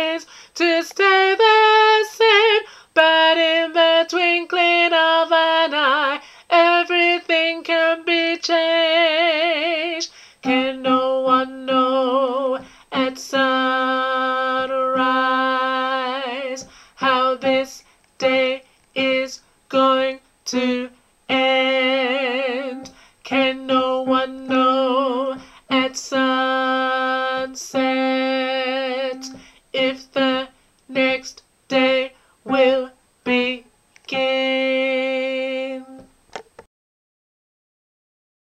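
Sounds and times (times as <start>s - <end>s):
alto voice singing a spiritual: 0.0s - 36.1s.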